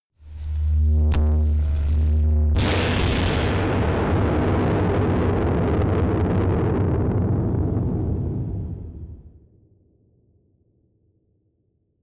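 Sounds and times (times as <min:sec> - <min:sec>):
distorted explosions: 0:00.3 - 0:09.3.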